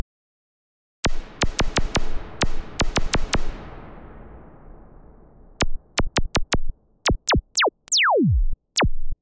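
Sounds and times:
filter zap: 1.1s - 8.9s.

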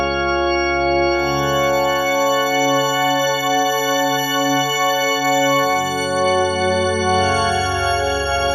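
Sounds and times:
synth pad: 0.1s - 8.5s.

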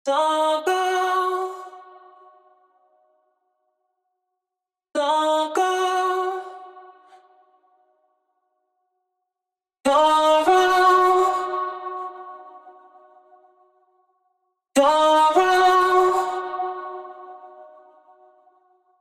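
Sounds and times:
person singing: 0.0s - 1.9s, 5.0s - 6.8s, 9.9s - 12.9s, 14.8s - 18.0s.

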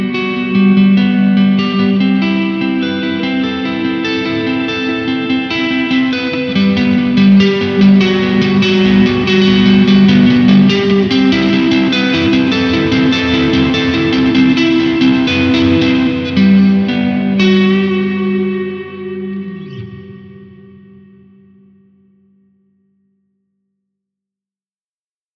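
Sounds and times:
arpeggio: 0.1s - 21.2s.

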